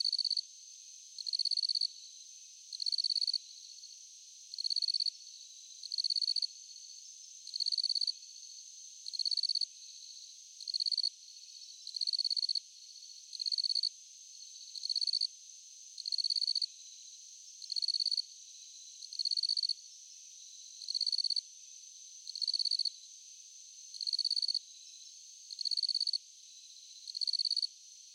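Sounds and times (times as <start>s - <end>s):
crickets at night: 0.0s - 28.1s.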